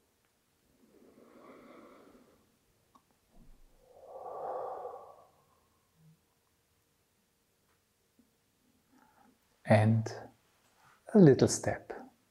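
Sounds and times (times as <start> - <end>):
slow deep breathing during a guided relaxation: 0.7 - 2.7, 3.5 - 6.2
speech: 9.7 - 10.3, 11.1 - 12.0.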